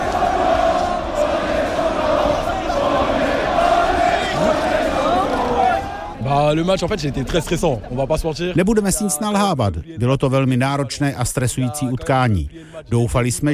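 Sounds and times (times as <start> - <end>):
street crowd cheering: 0.0 - 6.6
speech: 6.5 - 13.5.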